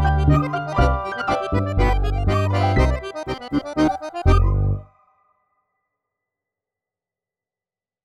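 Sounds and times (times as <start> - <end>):
tango music: 0.0 - 4.8.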